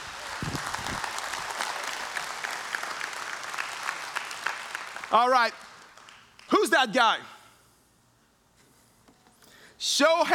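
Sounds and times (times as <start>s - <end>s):
audience applause: 0.0s - 6.6s
speech: 5.1s - 5.7s, 6.5s - 7.3s, 9.8s - 10.3s.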